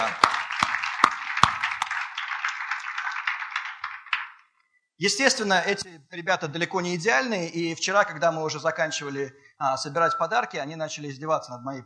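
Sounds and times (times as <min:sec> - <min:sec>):
audience clapping for the helpers who packed gifts: 0:00.0 - 0:04.7
speech: 0:05.0 - 0:11.8.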